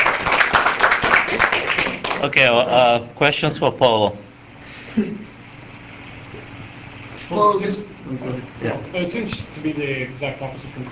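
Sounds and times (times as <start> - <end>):
audience clapping: 0.0 - 2.4
speech: 2.2 - 4.3, 5.0 - 5.3, 7.3 - 10.9.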